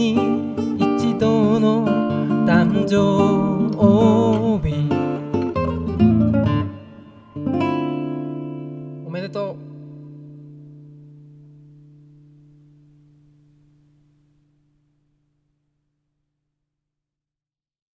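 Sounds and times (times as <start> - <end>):
birthday song: 0.0 - 10.4.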